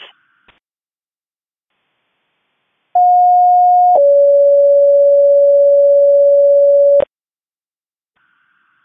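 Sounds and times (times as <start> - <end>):
rescue radio tone alerts: 3.0 - 7.1.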